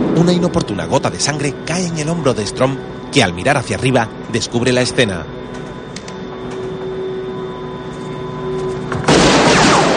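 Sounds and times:
speech: 0.2 - 5.6
pistol shot in a police action film scene: 9.0 - 9.9.

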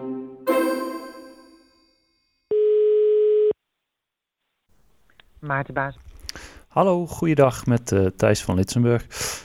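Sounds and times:
quick run of tonal notes ending in a ringing chime: 0.5 - 2.2
telephone ringing tone during a call: 2.5 - 3.5
speech: 5.5 - 6.1, 6.7 - 9.4.

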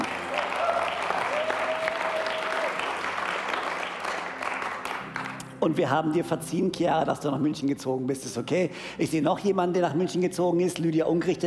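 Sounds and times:
audience applause: 0.0 - 5.4
speech: 5.6 - 11.4.

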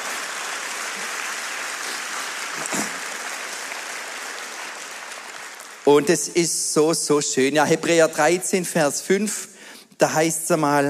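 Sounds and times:
audience applause: 0.0 - 6.0
speech: 5.9 - 10.8.

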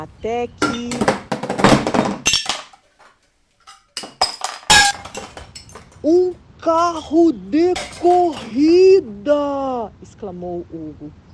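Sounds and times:
speech: 0.0 - 1.2, 6.0 - 11.2
metal junk clinking as it is arranged: 0.6 - 9.0.

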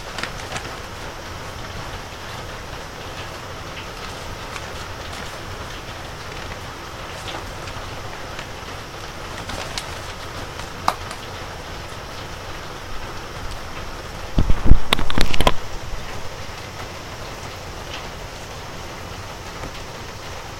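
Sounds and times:
dried carrot seeds being knocked loose under the eaves: 0.0 - 11.6
steady rain on a wet evening before a typhoon: 0.0 - 20.5.

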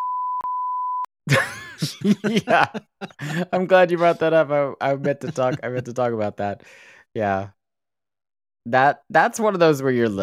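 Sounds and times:
censorship bleep over a lyric: 0.0 - 1.1
laughter: 1.3 - 6.1
speech: 1.3 - 7.6, 8.6 - 10.2.

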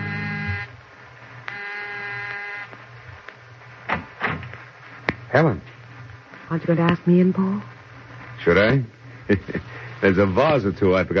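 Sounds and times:
electric doorbell buzzer: 0.0 - 0.7, 1.5 - 2.7
speech: 5.3 - 5.7, 6.5 - 7.7, 8.4 - 11.1.

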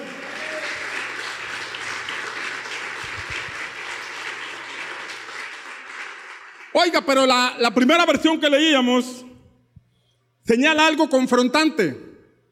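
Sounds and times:
audience applauding loudly: 0.0 - 7.4
speech: 6.8 - 9.2, 10.5 - 12.1.

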